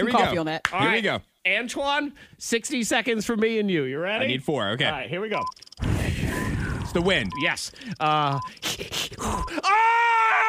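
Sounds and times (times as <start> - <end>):
speech: 0.0 - 5.9, 6.9 - 10.4
voice mimicking a woman groaning in labor: 8.6 - 9.8.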